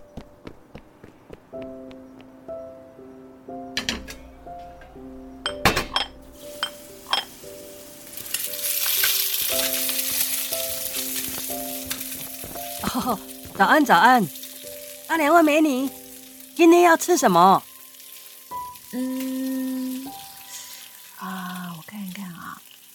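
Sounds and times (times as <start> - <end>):
soft steady melody: 0.0 - 21.8
utensils clinking and tapping against a griddle: 3.8 - 7.5, 8.2 - 13.6
food frying on a breakfast shop griddle: 5.0 - 22.9
speech: 13.0 - 14.4, 15.1 - 16.0, 16.6 - 17.7, 18.9 - 19.2.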